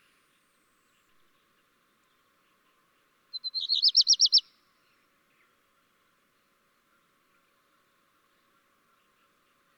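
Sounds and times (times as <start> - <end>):
black redstart singing: 3.4 - 4.4.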